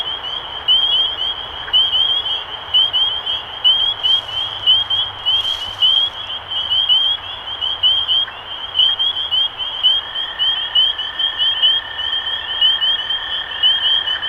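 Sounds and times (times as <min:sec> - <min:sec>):
spring peeper chorus of upslurred peeps: 0:00.0 - 0:14.1.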